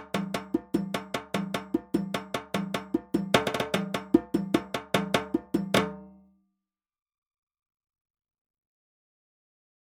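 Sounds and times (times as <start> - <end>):
kenkeni drum: 0.0 - 6.2.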